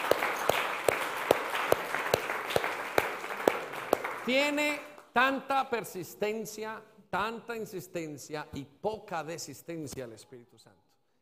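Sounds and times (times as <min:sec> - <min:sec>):
audience clapping in rhythm: 0:00.0 - 0:05.4
speech: 0:04.3 - 0:10.9.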